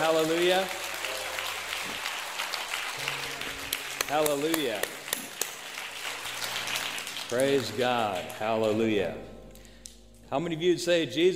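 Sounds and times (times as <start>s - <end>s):
speech: 0.0s - 0.8s, 4.1s - 5.0s, 7.3s - 9.4s, 10.3s - 11.3s
audience applauding in a large room: 0.0s - 9.0s.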